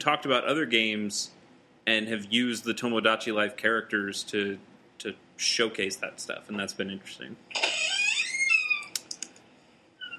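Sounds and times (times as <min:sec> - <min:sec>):
speech: 0:00.0 - 0:07.8
door pushed open by a dog: 0:07.6 - 0:08.9.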